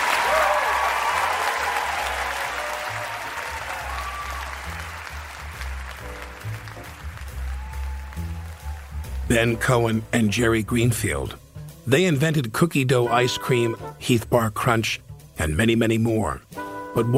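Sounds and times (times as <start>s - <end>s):
audience applause: 0.0s - 9.3s
speech: 9.3s - 17.1s.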